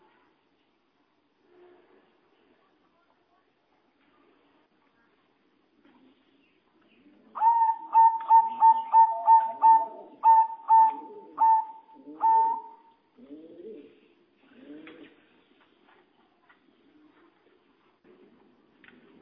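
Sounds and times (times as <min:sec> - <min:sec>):
Java sparrow singing short ringing notes: 0:07.4 - 0:12.9.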